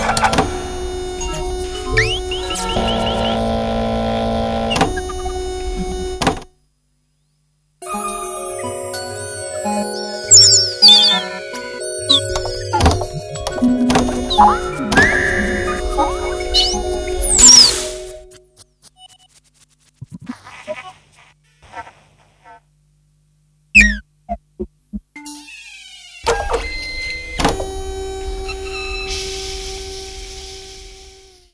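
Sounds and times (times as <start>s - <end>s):
machine messages: 0.0s - 6.2s, 8.0s - 21.0s, 23.8s - 29.4s.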